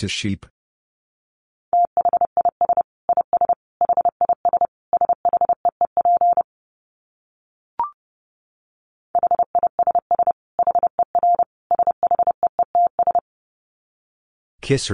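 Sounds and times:
speech: 0.0 - 0.5, 14.7 - 14.9
fast Morse code tones at 30 wpm: 1.8 - 6.4, 9.2 - 13.2.

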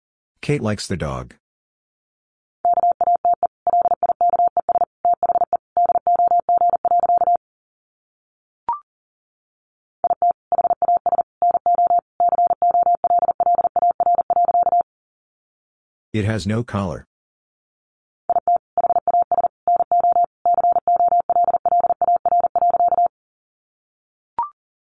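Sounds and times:
speech: 0.5 - 1.4, 16.2 - 17.1
Morse code tones at 40 wpm: 2.7 - 7.4, 10.0 - 14.8, 18.3 - 23.1.

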